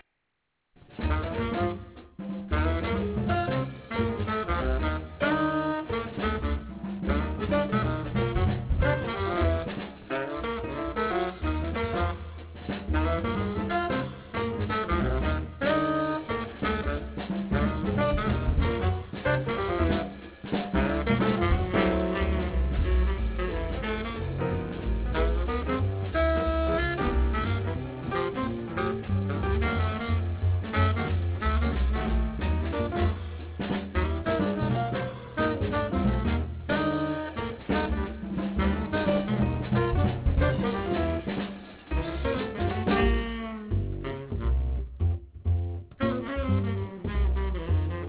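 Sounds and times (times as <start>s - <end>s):
piano: 0.8s - 48.0s.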